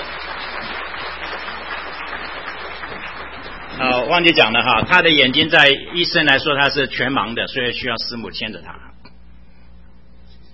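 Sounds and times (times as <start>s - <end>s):
audience applause: 0.0s - 6.1s
speech: 3.8s - 8.8s.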